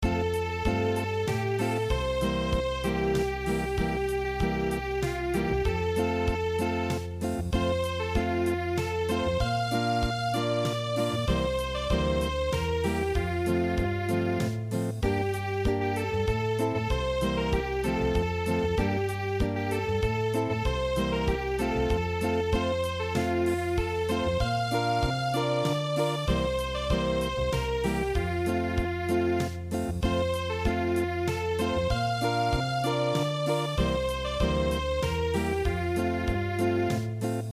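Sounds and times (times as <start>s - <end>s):
unplugged music: 0.0s - 37.5s.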